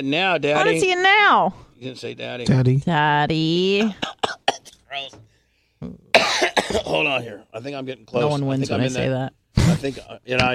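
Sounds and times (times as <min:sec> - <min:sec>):
speech: 0:00.0 - 0:04.2, 0:04.9 - 0:10.5
person coughing: 0:03.8 - 0:04.8, 0:06.2 - 0:07.2.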